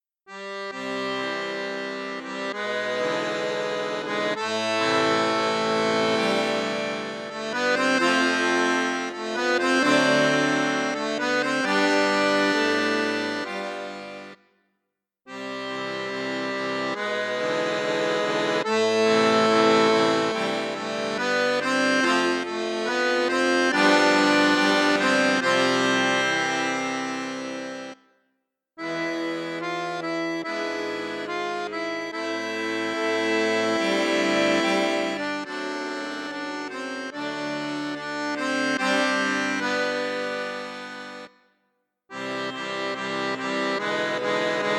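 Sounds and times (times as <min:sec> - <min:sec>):
accordion in bassoon and flute register: 0:00.0 - 0:14.5, 0:15.3 - 0:28.2, 0:28.8 - 0:44.7.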